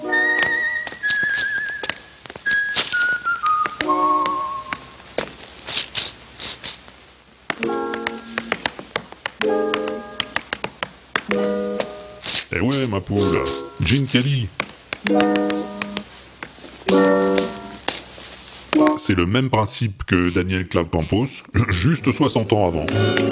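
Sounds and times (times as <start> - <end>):
tap dancing on newspaper: 0.3 - 19.0
tap dancing on floorboard: 0.4 - 2.6, 3.6 - 5.4, 7.5 - 11.9, 14.5 - 18.0
speech: 12.9 - 15.7, 19.1 - 23.3.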